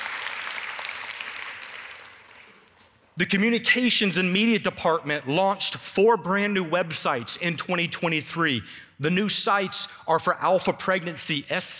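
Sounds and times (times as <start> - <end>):
audience applause: 0.0 - 2.7
speech: 3.2 - 11.7.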